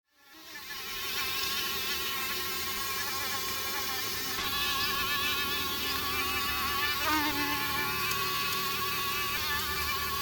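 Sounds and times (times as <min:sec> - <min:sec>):
mosquitoes whining in a buzzing chorus: 0:00.1 - 0:10.2.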